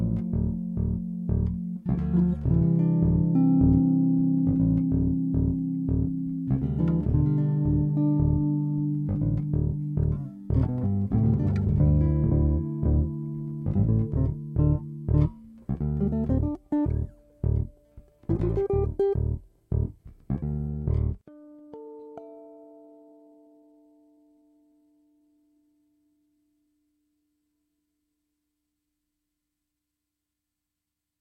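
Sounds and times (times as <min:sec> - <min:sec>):
groove chord voicing: 0:00.0 - 0:22.4.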